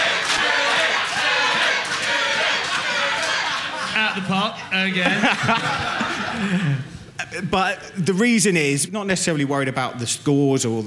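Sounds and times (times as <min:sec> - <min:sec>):
large crowd shouting and roaring: 0:00.0 - 0:04.3
laughter: 0:00.7 - 0:07.6
speech: 0:04.2 - 0:10.8.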